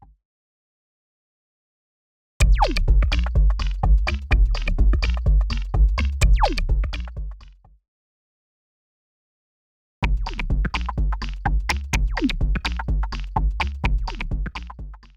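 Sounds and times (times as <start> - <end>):
non-stop 126 bpm music loop: 2.4 - 7.4, 10.0 - 15.0.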